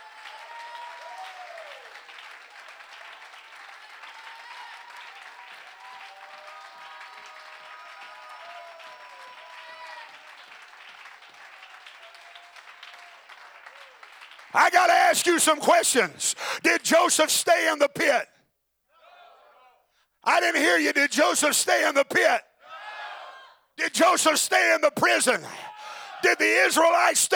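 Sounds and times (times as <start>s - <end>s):
audience clapping hands: 0.0s - 18.2s, 20.3s - 22.4s, 23.9s - 27.3s
speech: 14.6s - 18.3s, 20.4s - 22.5s, 23.8s - 27.3s.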